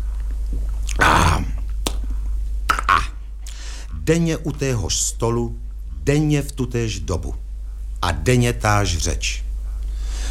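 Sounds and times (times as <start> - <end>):
loud lip smack after drinking: 0.1 - 2.1, 2.7 - 3.6
speech: 4.0 - 7.4, 8.0 - 9.4.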